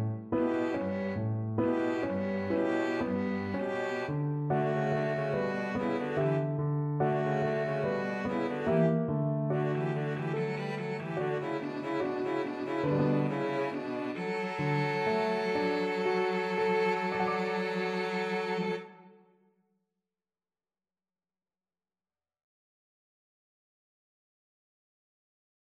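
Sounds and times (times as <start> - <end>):
violin and cello duet: 0.3 - 19.2.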